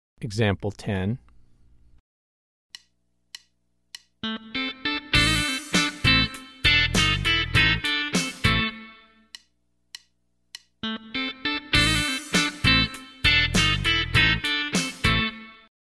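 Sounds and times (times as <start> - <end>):
country rock music: 4.2 - 9.0, 10.8 - 15.5.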